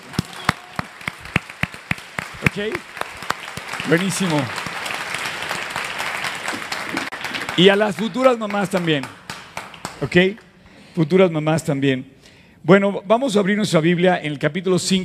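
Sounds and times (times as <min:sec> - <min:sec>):
audience applause: 0:00.0 - 0:10.2
speech: 0:02.4 - 0:03.0, 0:03.8 - 0:04.7, 0:07.6 - 0:09.2, 0:10.0 - 0:10.4, 0:11.0 - 0:15.0.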